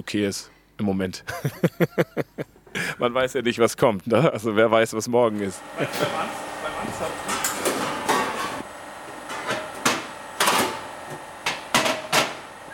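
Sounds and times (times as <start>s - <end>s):
steady low noise: 0.0s - 5.6s
speech: 0.0s - 7.4s
laughter: 1.3s - 3.1s, 5.4s - 7.2s
machine building pressure for a leak test: 5.5s - 12.7s.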